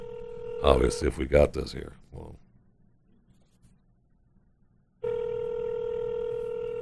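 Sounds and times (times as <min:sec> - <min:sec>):
telephone line tone: 0:00.0 - 0:01.0, 0:05.0 - 0:06.8
speech: 0:00.6 - 0:02.4.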